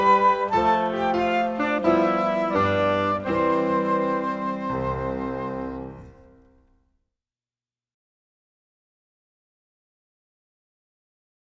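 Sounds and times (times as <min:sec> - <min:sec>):
music: 0:00.0 - 0:07.0.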